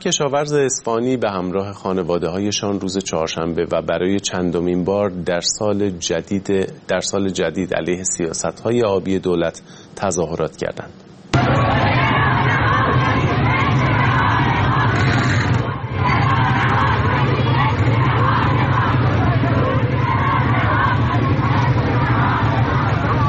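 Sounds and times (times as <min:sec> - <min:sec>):
speech: 0:00.0 - 0:11.5
protesting farmers chanting slogans: 0:11.4 - 0:23.2.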